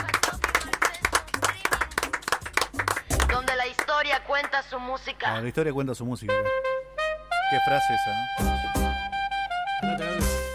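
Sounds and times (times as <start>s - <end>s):
applause: 0.0s - 4.6s
speech: 4.1s - 6.7s, 7.5s - 8.8s, 9.8s - 10.4s.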